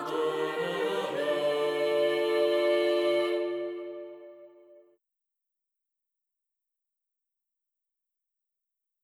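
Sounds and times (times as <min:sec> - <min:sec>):
vocals: 0:00.0 - 0:04.4.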